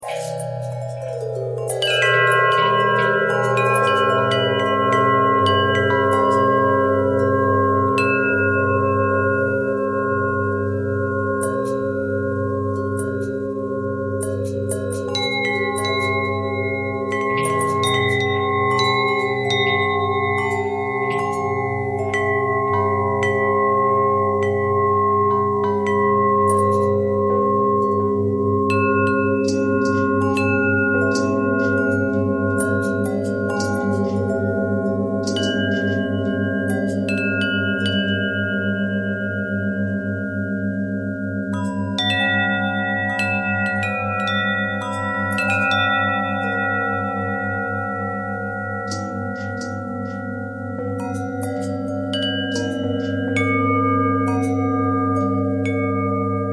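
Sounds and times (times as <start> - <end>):
long twisting bell: 0.0 - 56.5.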